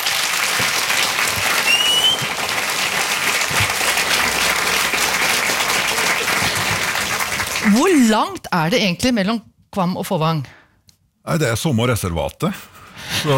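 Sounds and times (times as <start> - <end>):
audience applause: 0.0 - 8.2
speech: 7.7 - 10.6, 11.2 - 13.3.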